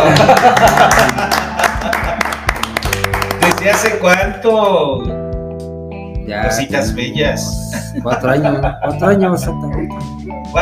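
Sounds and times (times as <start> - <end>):
laughter: 0.0 - 2.6, 7.6 - 9.2
applause: 0.0 - 4.3
speech: 0.4 - 1.2, 3.7 - 5.2, 6.3 - 10.6.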